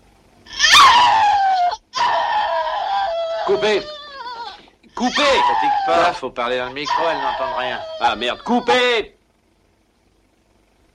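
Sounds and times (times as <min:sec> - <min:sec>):
woman screaming in shower scene: 0:00.5 - 0:06.2, 0:06.8 - 0:09.0
speech: 0:03.5 - 0:04.0, 0:05.0 - 0:09.2.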